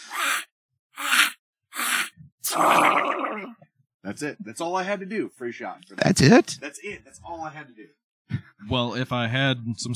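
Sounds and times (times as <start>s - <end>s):
voice imitating a cartoon duck-style sneeze: 0.0s - 2.9s
speech: 2.6s - 9.9s.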